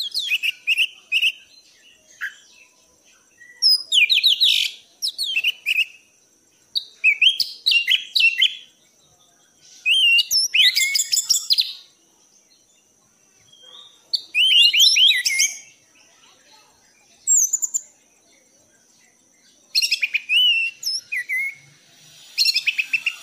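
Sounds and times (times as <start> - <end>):
orange-headed thrush whistling song: 0.0 - 6.1, 6.8 - 8.7, 9.7 - 12.0, 13.5 - 15.8, 19.6 - 23.2.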